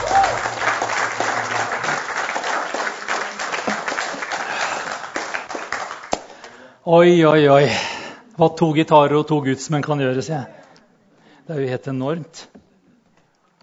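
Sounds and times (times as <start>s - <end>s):
audience clapping: 0.0s - 6.6s
speech: 6.9s - 10.6s, 11.5s - 12.5s.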